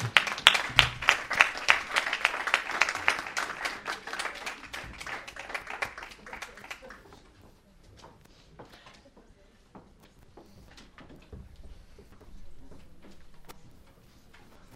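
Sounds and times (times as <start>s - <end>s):
applause: 0.0s - 7.2s.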